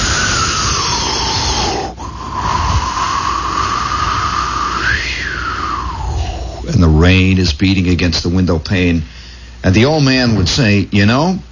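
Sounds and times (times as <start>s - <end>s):
wind howling past the window: 0.0s - 7.1s
speech: 7.6s - 11.5s.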